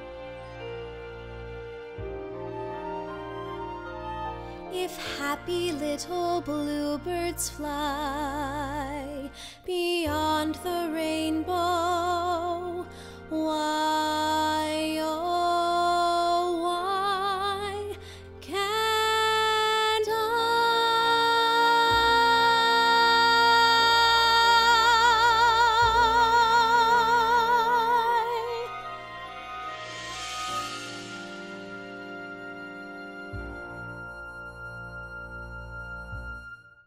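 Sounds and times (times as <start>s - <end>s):
person singing: 4.7s - 29.4s.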